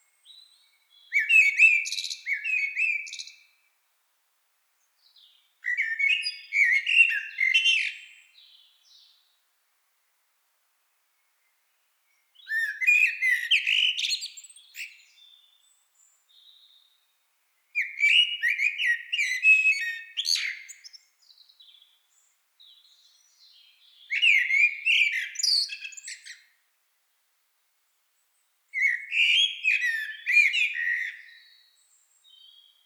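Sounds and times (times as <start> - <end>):
Eurasian blackbird singing fluty phrases: 0.2 - 3.5, 5.1 - 9.2, 12.4 - 17.0, 17.8 - 26.5, 28.8 - 32.8.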